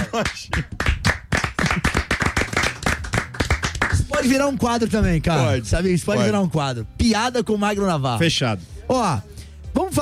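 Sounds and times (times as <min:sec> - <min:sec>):
round of applause: 0:00.0 - 0:04.3
speech: 0:00.2 - 0:00.8, 0:04.2 - 0:10.0.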